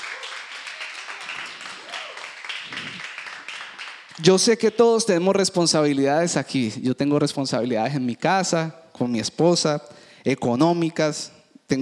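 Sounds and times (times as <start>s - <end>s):
faint voices and cheers: 0.0s - 3.1s
crowd applause: 0.0s - 4.2s
speech: 4.2s - 11.7s.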